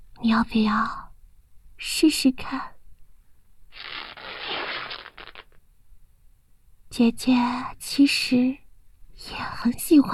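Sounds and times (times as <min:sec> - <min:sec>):
speech: 0:00.2 - 0:01.0, 0:01.8 - 0:02.7, 0:07.0 - 0:08.6, 0:09.2 - 0:10.1
stockings being torn open: 0:03.7 - 0:05.6.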